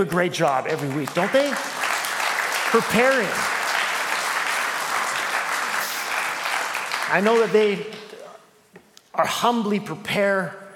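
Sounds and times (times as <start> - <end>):
speech: 0.0 - 1.8, 2.7 - 3.6, 7.1 - 8.0, 9.2 - 10.6
audience applause: 0.4 - 7.8.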